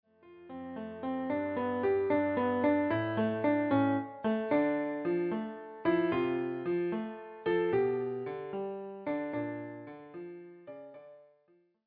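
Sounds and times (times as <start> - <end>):
piano piece: 0.0 - 11.6.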